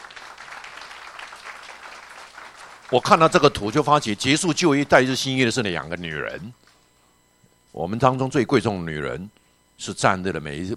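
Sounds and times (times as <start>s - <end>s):
church gathering applauding the women in the congregation: 0.0s - 6.8s
speech: 2.9s - 6.6s, 7.7s - 10.7s.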